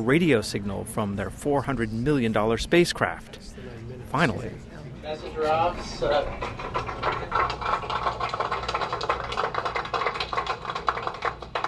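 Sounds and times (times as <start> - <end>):
speech: 0.0 - 8.0
applause in mission control: 6.3 - 11.6.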